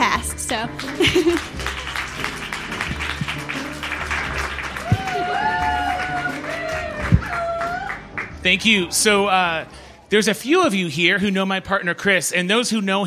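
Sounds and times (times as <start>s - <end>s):
speech: 0.5s - 1.7s, 8.4s - 13.0s
audience applause and cheering: 0.6s - 9.2s
laughter: 0.9s - 2.3s.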